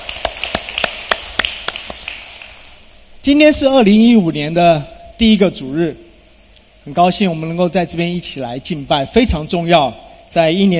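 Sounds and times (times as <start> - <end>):
thin audience applause of sharp bright claps: 0.0 - 2.7
speech: 3.2 - 6.0, 6.8 - 10.7.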